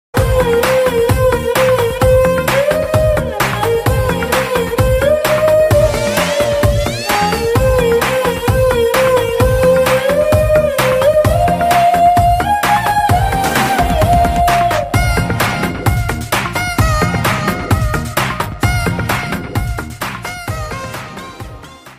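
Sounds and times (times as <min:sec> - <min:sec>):
background music ringtone: 0:00.2 - 0:21.9.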